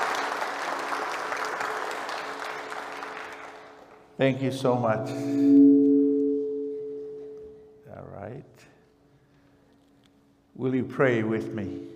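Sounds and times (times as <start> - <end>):
church audience applause welcoming a preacher: 0.0 - 4.1
speech: 4.2 - 5.8, 8.1 - 8.8, 10.6 - 11.9.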